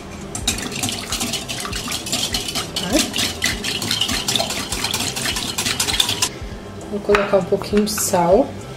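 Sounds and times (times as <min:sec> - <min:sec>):
whisking egg yolks with half a cup of milk in a bowl: 0:00.4 - 0:06.3
speech: 0:07.1 - 0:08.6.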